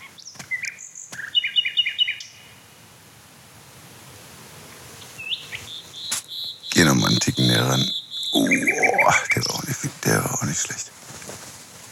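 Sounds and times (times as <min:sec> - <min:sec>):
male songbird singing: 0:00.0 - 0:02.6, 0:05.0 - 0:10.9
speech: 0:07.6 - 0:08.0, 0:10.2 - 0:11.1.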